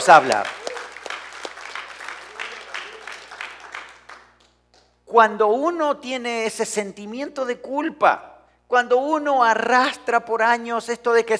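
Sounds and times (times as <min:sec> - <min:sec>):
speech: 0:00.0 - 0:00.6, 0:05.1 - 0:11.3
audience applauding: 0:00.0 - 0:04.6.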